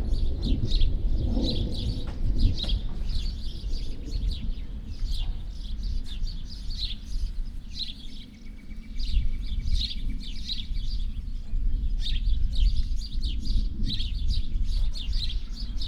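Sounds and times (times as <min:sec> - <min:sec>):
thunder: 0:00.0 - 0:05.3
wind: 0:00.0 - 0:15.8.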